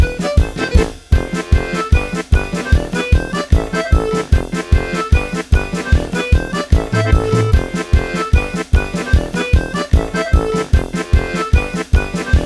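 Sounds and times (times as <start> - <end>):
comic accordion music: 0.0 - 12.4.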